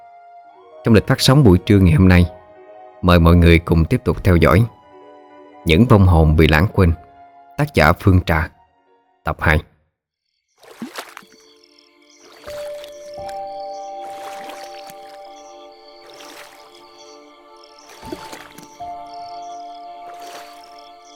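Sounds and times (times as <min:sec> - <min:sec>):
speech: 0:00.8 - 0:02.4, 0:03.0 - 0:04.8, 0:05.6 - 0:07.0, 0:07.6 - 0:08.6, 0:09.2 - 0:09.7
paddle strokes of a small three-plank wooden boat rowed through a canal: 0:10.6 - 0:11.5, 0:12.2 - 0:19.1, 0:19.9 - 0:21.1
steady tonal music bed: 0:12.5 - 0:21.1.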